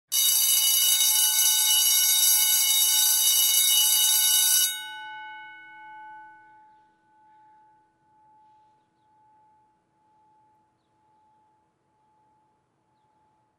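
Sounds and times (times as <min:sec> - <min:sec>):
bells ringing: 0:00.1 - 0:12.8.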